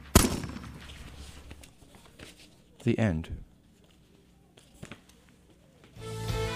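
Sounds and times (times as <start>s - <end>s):
pistol shot: 0.0s - 0.8s
speech: 2.8s - 3.5s.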